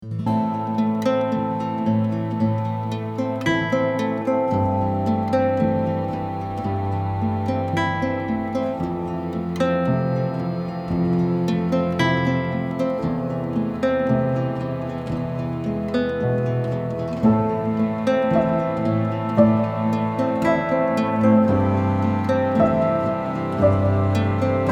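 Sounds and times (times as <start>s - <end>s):
guitar: 0.0s - 24.7s.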